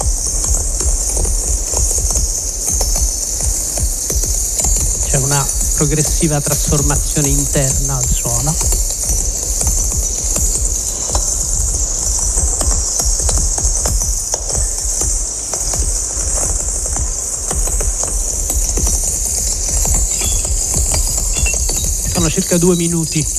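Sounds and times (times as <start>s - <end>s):
bright constant hiss: 0.0s - 23.3s
low rumbling thuds: 0.0s - 23.3s
processed crackling of burning coal: 0.0s - 23.3s
speech: 5.2s - 8.8s, 22.5s - 23.3s.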